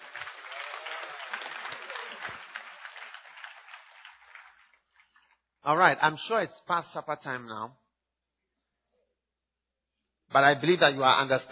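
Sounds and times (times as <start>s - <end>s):
audience clapping: 0.0s - 5.5s
speech: 5.7s - 7.8s, 10.3s - 11.5s.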